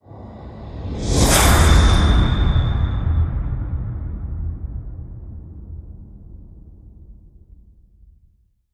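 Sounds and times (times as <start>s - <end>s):
hit swoosh fusion: 0.8s - 5.1s.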